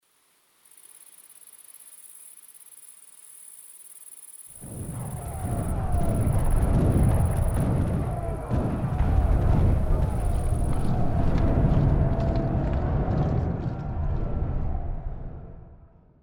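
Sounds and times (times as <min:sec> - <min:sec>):
ambience: 0:03.9 - 0:16.2.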